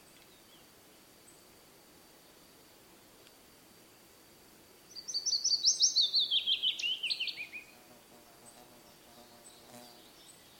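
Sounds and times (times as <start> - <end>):
willow warbler song: 4.9 - 7.8, 8.9 - 10.5.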